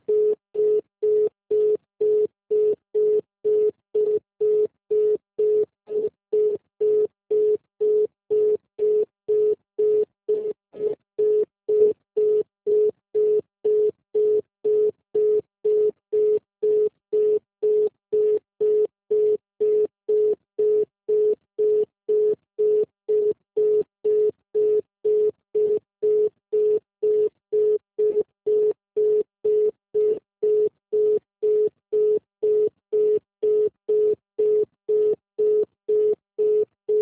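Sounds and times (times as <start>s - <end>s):
telephone line tone after an automated Santander call hangs up: 0.1s - 37.0s.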